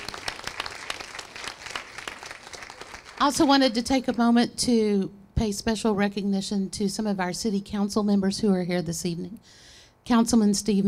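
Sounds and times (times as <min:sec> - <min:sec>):
crowd applauding: 0:00.0 - 0:03.6
speech: 0:03.2 - 0:10.8.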